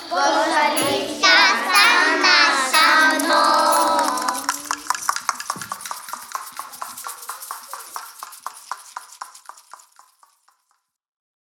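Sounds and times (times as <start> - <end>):
little song: 0.0 - 8.3.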